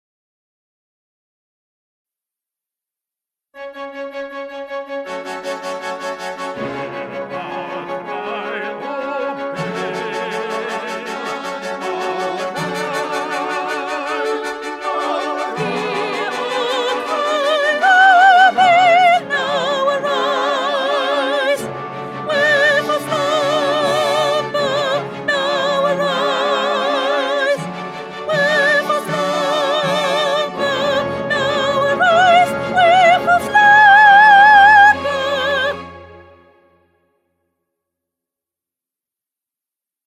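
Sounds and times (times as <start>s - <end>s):
soprano singing: 6.5s - 36.2s.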